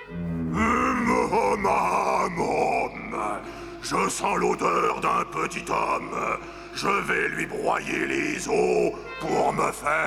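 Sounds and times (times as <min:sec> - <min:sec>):
voice imitating a giant roaring: 0:00.4 - 0:03.5
speech: 0:01.3 - 0:10.0.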